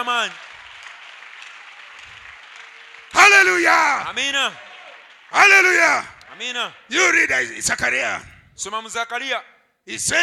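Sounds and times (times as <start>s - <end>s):
speech: 0.0s - 0.5s, 3.2s - 4.7s, 5.3s - 10.2s
audience clapping: 0.0s - 7.2s.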